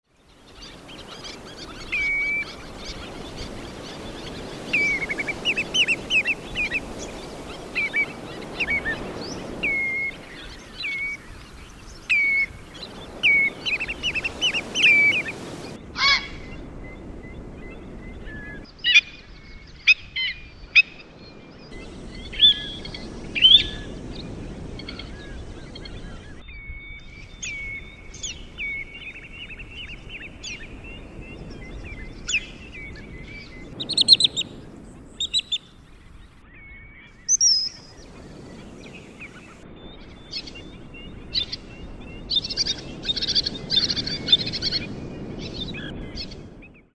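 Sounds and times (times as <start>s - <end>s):
birds in the lagoons: 0.1s - 46.9s.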